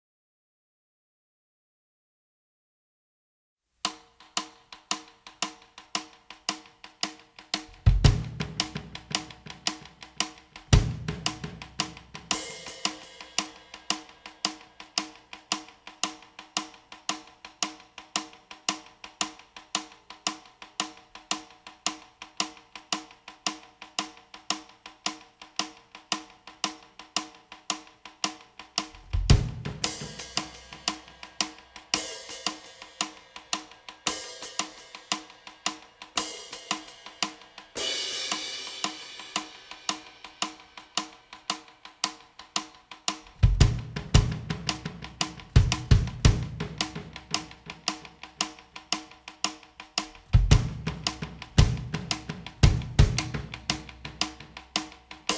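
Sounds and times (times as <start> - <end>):
drums: 3.9 - 55.3.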